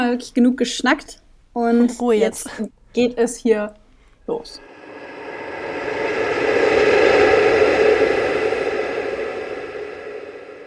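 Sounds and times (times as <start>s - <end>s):
speech: 0.0s - 4.7s
howling gusts of icy winter wind: 4.6s - 10.6s.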